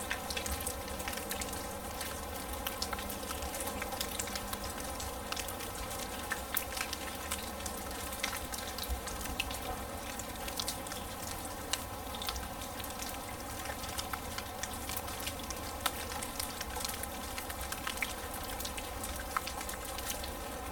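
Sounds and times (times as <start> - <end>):
smooth rain on grass: 0.0 - 20.7.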